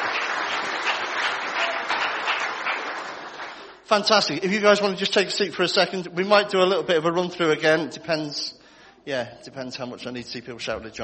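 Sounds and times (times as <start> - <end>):
crowd round of applause: 0.0 - 3.8
speech: 3.9 - 11.0.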